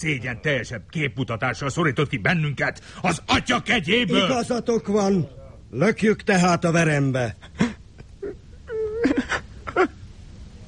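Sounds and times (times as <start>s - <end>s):
speech: 0.0s - 7.7s
person wailing and sobbing in a radio drama: 7.6s - 10.0s.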